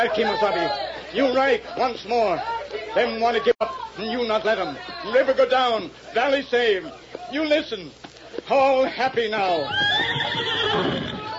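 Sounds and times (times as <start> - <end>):
speech: 0.0 - 11.0
horse whinnying: 9.7 - 11.3.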